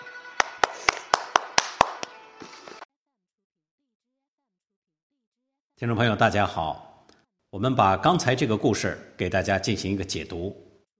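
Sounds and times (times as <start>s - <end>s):
applause: 0.0s - 2.6s
speech: 5.8s - 6.9s, 7.5s - 10.6s.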